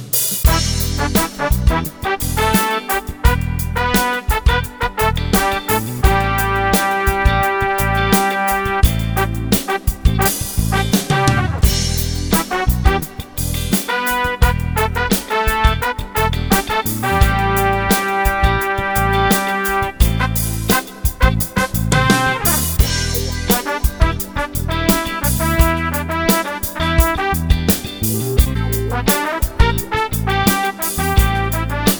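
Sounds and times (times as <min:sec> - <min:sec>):
trumpet: 0:00.5 - 0:31.9.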